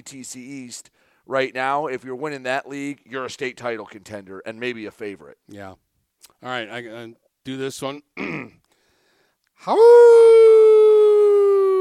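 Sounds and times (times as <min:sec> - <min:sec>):
speech: 0:00.0 - 0:08.6, 0:09.6 - 0:10.4
man imitating a wolf howl: 0:09.6 - 0:11.7.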